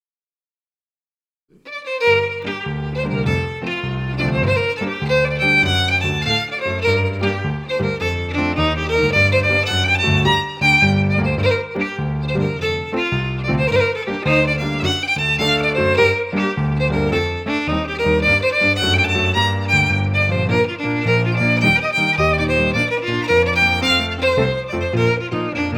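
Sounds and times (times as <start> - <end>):
fiddle jig: 1.6 - 25.7
piano: 1.7 - 25.7.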